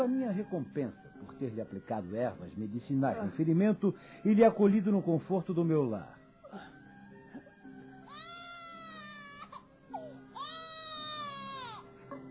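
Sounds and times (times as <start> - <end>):
speech: 0.0 - 6.7
child crying: 8.1 - 11.8.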